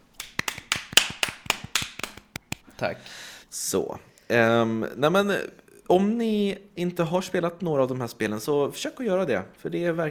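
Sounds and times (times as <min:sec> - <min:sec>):
one person giving brief applause: 0:00.0 - 0:02.6
speech: 0:02.8 - 0:10.0.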